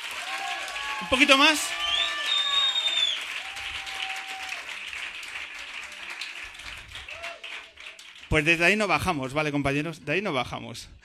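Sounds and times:
voices cheering: 0:00.0 - 0:04.8, 0:07.0 - 0:07.8
studio audience at a live radio show in La Palma clapping: 0:00.0 - 0:09.3
speech: 0:01.0 - 0:01.9, 0:08.3 - 0:11.0.

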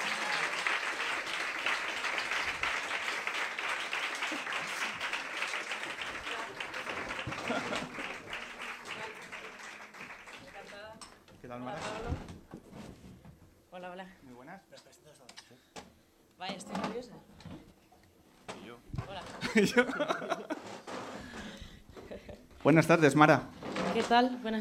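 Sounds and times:
audience applause: 0:00.0 - 0:11.2
laughter: 0:03.8 - 0:09.3, 0:19.4 - 0:22.4
speech: 0:13.8 - 0:15.7, 0:16.4 - 0:17.3, 0:19.6 - 0:20.5, 0:22.6 - 0:24.5.

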